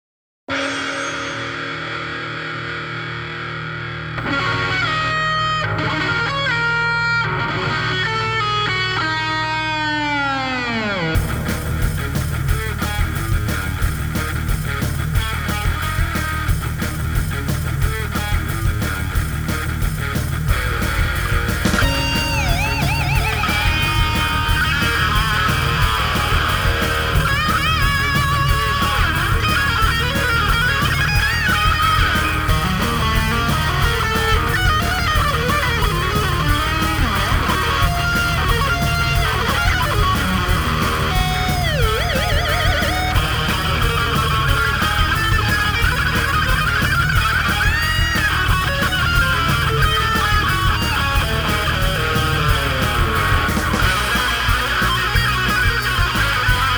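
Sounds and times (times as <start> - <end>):
insane metal music: 0.5 - 56.7.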